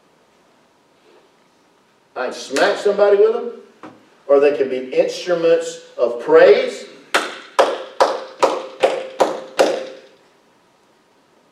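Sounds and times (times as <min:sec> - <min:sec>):
speech: 0:02.2 - 0:03.6, 0:04.3 - 0:06.8
hand clapping: 0:07.1 - 0:10.2.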